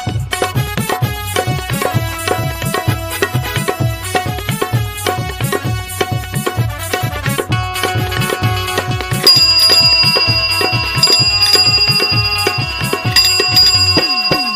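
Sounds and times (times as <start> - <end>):
rhythmic music beat: 0.0 - 14.5
bicycle bell ringing: 9.2 - 14.5.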